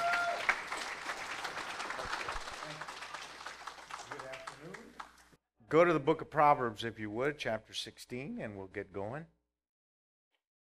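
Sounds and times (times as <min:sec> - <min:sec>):
audience applauding: 0:00.0 - 0:05.3
speech: 0:05.7 - 0:09.4.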